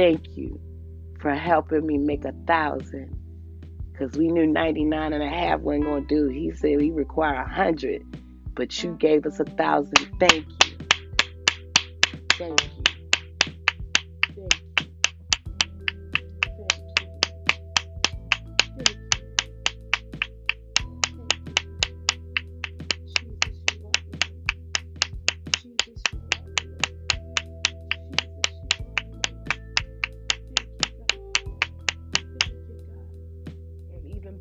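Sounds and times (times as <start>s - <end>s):
speech: 0.0s - 3.2s, 4.0s - 10.6s, 12.4s - 12.8s
music with sustained low notes: 0.0s - 34.3s
hand claps keeping a quick steady beat: 10.0s - 32.6s.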